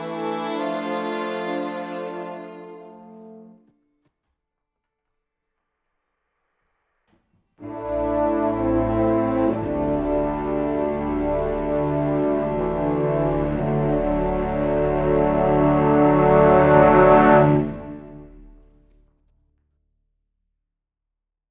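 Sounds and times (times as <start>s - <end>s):
classical cinematic underscore: 0.0s - 3.7s, 7.6s - 18.7s.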